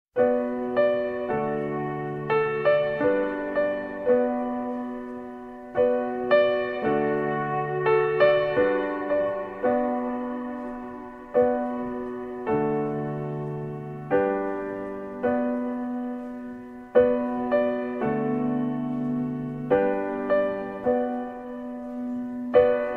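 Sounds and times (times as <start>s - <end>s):
instrumental music: 0.2s - 22.9s.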